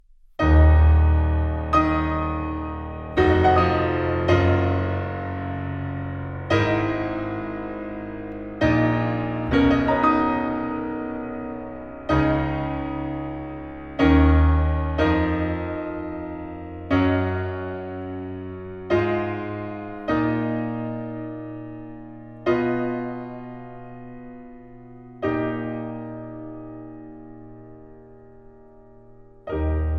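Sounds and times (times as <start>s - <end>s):
piano sonata adagio and poco allegro: 0.0s - 29.9s.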